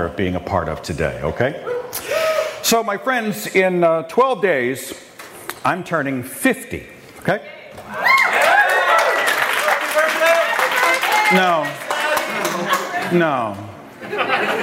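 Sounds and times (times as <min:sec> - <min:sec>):
speech: 0:00.0 - 0:05.0, 0:05.6 - 0:08.1, 0:11.3 - 0:11.8, 0:13.1 - 0:14.6
audience clapping: 0:08.0 - 0:13.6
laughter: 0:11.4 - 0:14.6.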